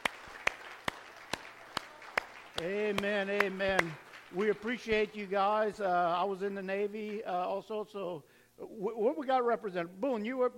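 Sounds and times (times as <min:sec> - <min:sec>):
audience hand clapping: 0:00.0 - 0:05.3
speech: 0:02.6 - 0:10.5.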